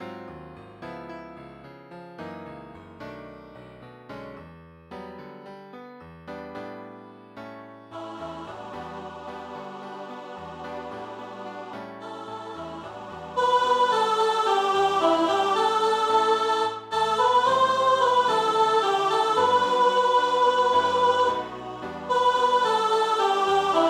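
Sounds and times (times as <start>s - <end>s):
soprano singing a kyrie: 8.0s - 23.8s.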